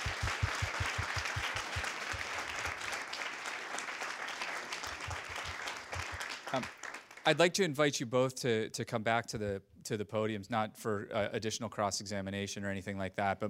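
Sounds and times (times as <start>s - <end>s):
low thumps: 0.0s - 1.9s
audience applause: 0.0s - 7.4s
speech: 6.5s - 13.4s.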